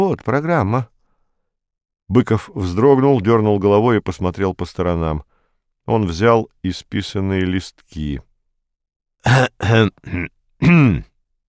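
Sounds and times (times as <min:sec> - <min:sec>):
speech: 0:00.0 - 0:00.9, 0:02.1 - 0:05.3, 0:05.9 - 0:08.3, 0:09.2 - 0:11.1
man clearing his throat: 0:09.2 - 0:11.2.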